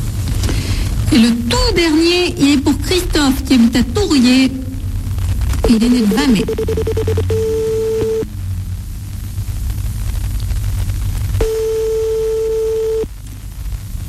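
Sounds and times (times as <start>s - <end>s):
constant hiss and low rumble on the telephone line: 0.0s - 14.0s
speech: 1.1s - 4.6s, 5.6s - 7.5s
telephone ringing tone: 6.4s - 8.3s, 11.4s - 13.1s.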